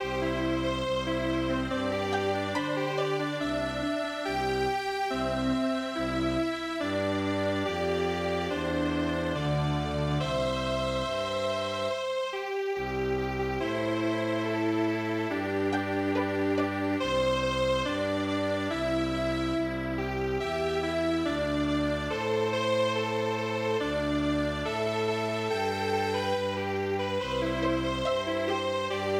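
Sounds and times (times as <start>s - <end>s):
strings: 0.0s - 29.1s.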